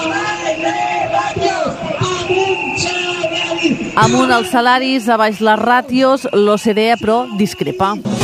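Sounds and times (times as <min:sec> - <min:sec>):
protesters shouting slogans: 0:00.0 - 0:06.4
speech: 0:04.0 - 0:08.1.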